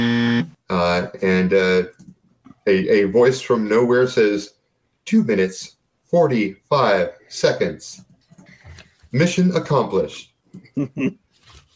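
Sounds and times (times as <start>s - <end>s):
loud harsh buzzer: 0.0s - 0.6s
speech: 0.0s - 2.0s, 2.6s - 8.1s, 9.1s - 11.2s.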